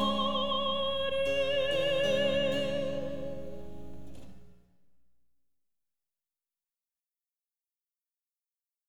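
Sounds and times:
soprano singing a recitative with orchestra: 0.0 - 3.6.

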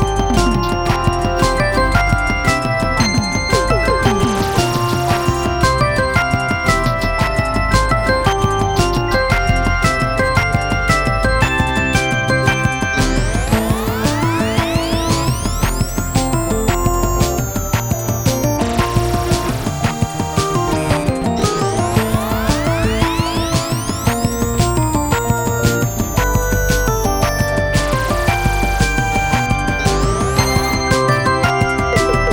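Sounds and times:
bombastic synth fanfare: 0.0 - 32.3.

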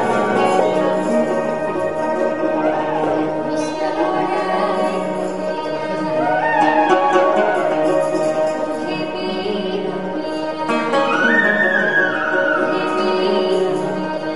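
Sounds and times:
eastern Assamese tune from India: 0.0 - 14.3.

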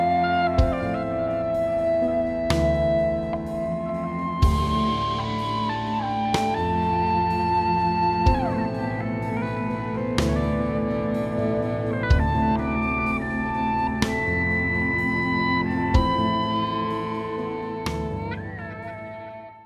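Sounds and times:
drums: 0.0 - 18.9
calm gentle sad piano: 0.0 - 19.6
guitar solo: 0.0 - 19.6.

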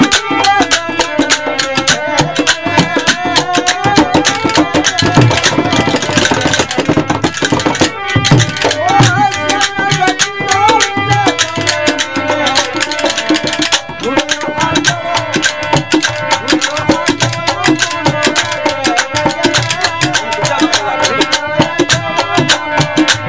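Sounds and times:
person singing a Sufi camel song in India: 0.0 - 23.2.

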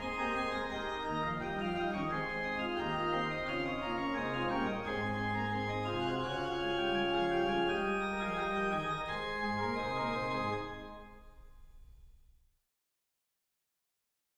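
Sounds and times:
organ chorale prelude: 0.0 - 11.4.

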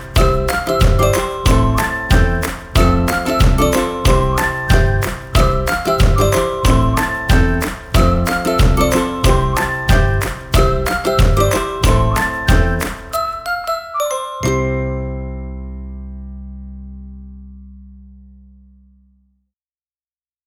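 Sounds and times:
whistling: 0.0 - 14.5
ukulele: 0.0 - 17.0.

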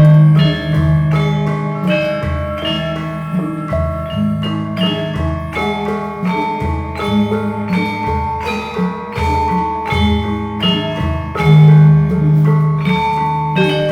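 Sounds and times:
Gamelan Kraton in Indonesia: 0.0 - 13.9.

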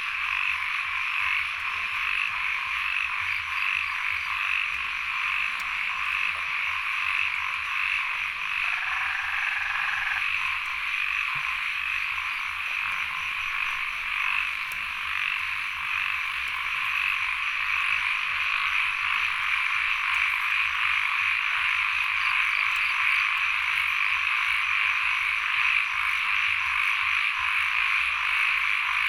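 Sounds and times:
frog chorus croaking: 0.0 - 29.0
high continuous insect whine: 0.0 - 29.0.

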